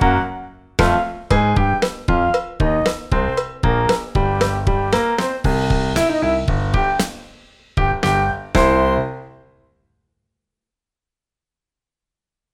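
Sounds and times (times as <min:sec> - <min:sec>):
funk music: 0:00.0 - 0:09.4.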